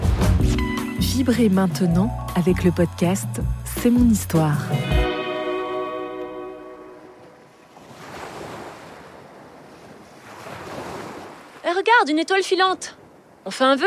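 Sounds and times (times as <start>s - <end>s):
sustained musical tone: 0.6s - 7.6s
speech: 1.0s - 5.0s, 12.0s - 13.8s
ocean waves on the shore at night: 4.5s - 13.8s.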